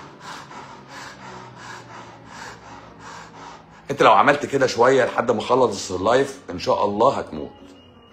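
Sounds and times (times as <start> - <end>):
voice imitating heavy panting: 0.0 - 5.8
speech: 3.9 - 7.6.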